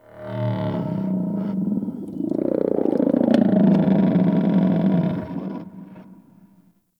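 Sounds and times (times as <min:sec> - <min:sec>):
creature growl: 0:00.6 - 0:05.3.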